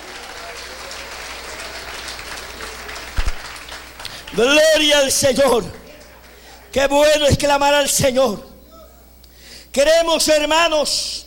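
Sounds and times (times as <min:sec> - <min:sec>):
audience applause: 0:00.0 - 0:06.8
speech: 0:04.3 - 0:05.8, 0:06.8 - 0:08.5, 0:09.8 - 0:11.2.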